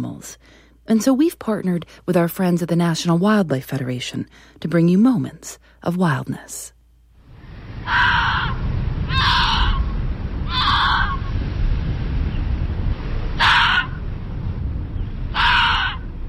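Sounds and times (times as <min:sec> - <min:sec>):
speech: 0:00.0 - 0:06.8, 0:07.9 - 0:09.6
steady low rumble: 0:07.2 - 0:16.2
Arctic fox harsh raspy cawing calls: 0:07.8 - 0:11.3, 0:13.4 - 0:14.0, 0:15.3 - 0:16.1.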